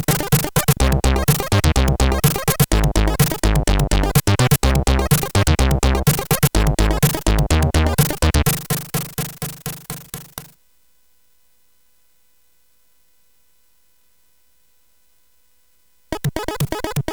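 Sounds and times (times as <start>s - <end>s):
music on SID chip CSG8580R5: 0.0s - 10.6s, 16.1s - 17.1s.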